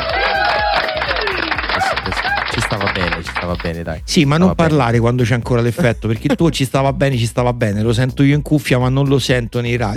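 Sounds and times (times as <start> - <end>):
crowd cheering and whistling: 0.0 - 3.0
large crowd applause: 0.0 - 3.8
speech: 3.5 - 9.9.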